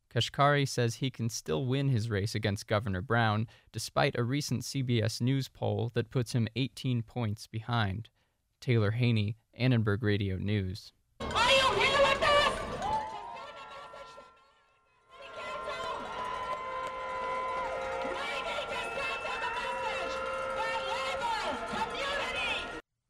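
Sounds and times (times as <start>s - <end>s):
speech: 0.2s - 11.8s
protest marchers of the coalition Fix LA shouting: 11.2s - 14.3s, 15.2s - 22.8s.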